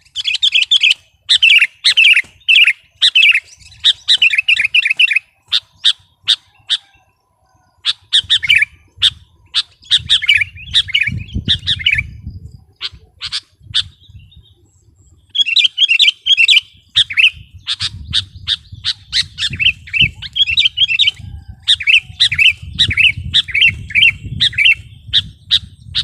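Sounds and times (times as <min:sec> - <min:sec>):
Sooty-headed bulbul song: 0:00.0 - 0:26.0.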